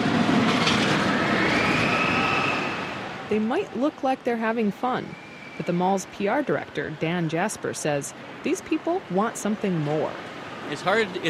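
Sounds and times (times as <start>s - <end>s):
kids screaming on roller coasters: 0.9s - 3.3s
speech: 3.3s - 11.2s.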